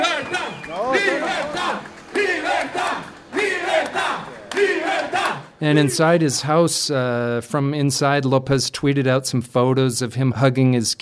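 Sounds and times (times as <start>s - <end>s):
car horns honking: 0.0s - 6.1s
celebrating crowd shouting political slogans: 0.0s - 6.1s
speech: 0.7s - 10.9s
people singing the national anthem: 1.0s - 5.9s.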